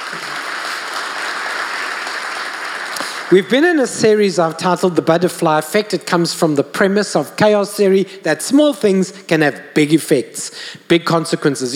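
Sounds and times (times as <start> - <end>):
audience applause: 0.0 - 3.8
speech: 0.1 - 0.5, 3.3 - 11.7.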